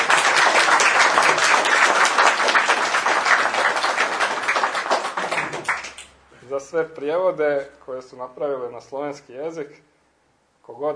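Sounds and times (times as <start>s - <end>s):
audience applause thanking translators: 0.0s - 6.1s
speech: 6.7s - 9.9s, 10.7s - 10.9s.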